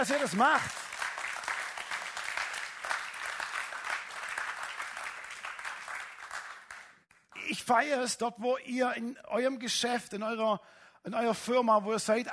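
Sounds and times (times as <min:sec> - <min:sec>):
speech: 0:00.0 - 0:00.8, 0:07.5 - 0:12.3
audience applause: 0:00.0 - 0:07.0.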